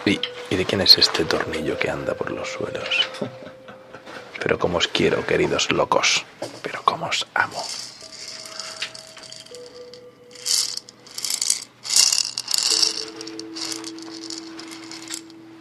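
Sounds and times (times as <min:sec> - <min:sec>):
speech: 0:00.0 - 0:03.6, 0:04.4 - 0:07.9
toucan-shaped maraca shaken: 0:07.6 - 0:15.4.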